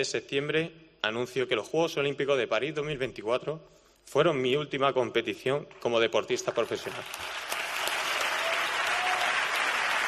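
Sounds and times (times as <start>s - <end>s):
speech: 0.0s - 7.4s
long audience applause: 6.8s - 10.0s.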